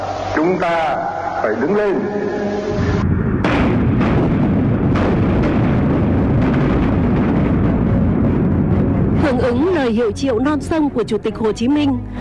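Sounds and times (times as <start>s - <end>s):
speech: 0.4s - 3.0s, 9.4s - 12.1s
artillery cannons firing from Đài Láng fort: 3.4s - 10.0s.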